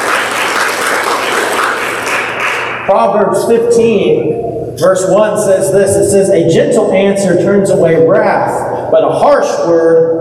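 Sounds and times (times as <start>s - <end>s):
audience applause: 0.0s - 2.8s
speech: 2.9s - 10.1s.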